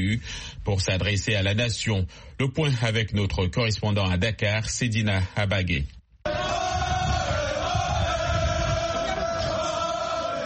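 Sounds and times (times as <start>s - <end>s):
speech: 0.1s - 6.0s
huge crowd shouting victory cries: 6.3s - 10.4s.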